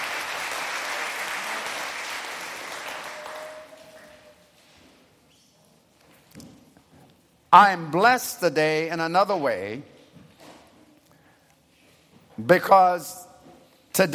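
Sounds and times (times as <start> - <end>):
crowd clapping: 0.0 - 4.4
speech: 7.5 - 9.9, 12.4 - 13.2, 14.0 - 14.1.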